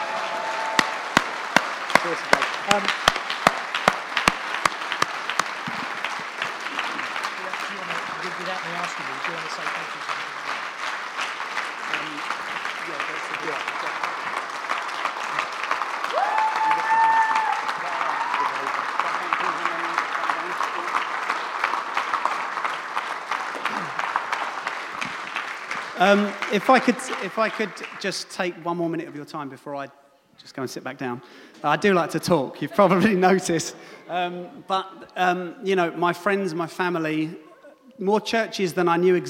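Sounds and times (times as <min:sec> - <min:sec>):
audience applause: 0:00.0 - 0:29.3
speech: 0:02.0 - 0:03.0, 0:08.9 - 0:10.1, 0:26.0 - 0:37.4, 0:38.0 - 0:39.2
person cheering: 0:16.1 - 0:18.8.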